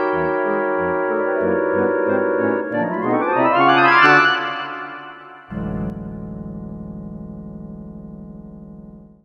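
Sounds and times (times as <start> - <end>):
clarinets playing a shuffle: 0.0 - 5.6.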